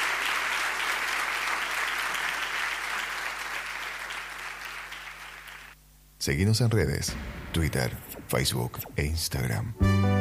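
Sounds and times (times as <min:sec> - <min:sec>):
audience applause: 0:00.0 - 0:05.8
speech: 0:06.2 - 0:10.1.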